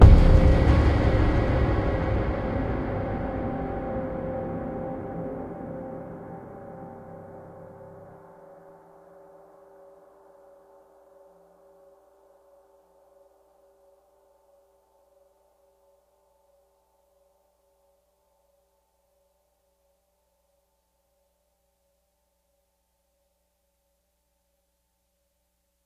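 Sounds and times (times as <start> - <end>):
service tunnel music stinger: 0.0 - 8.5.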